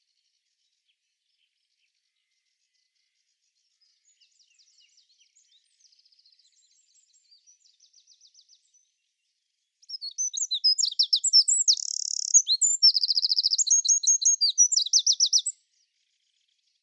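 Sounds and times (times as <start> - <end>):
bird calling with chirps: 9.9 - 15.5.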